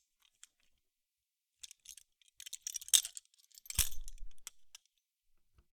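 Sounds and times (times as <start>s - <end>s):
small handcuffs opening and closing: 2.7s - 4.8s.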